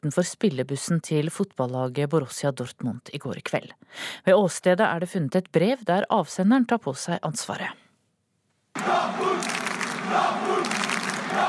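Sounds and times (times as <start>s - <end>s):
speech: 0.0s - 7.8s, 8.8s - 9.5s
Monaco football supporters cheering in stadium: 8.7s - 11.4s.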